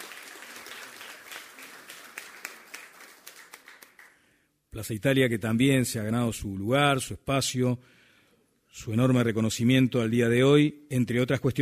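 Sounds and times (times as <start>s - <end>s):
audience applause: 0.0s - 4.2s
speech: 4.7s - 8.0s, 8.7s - 11.6s.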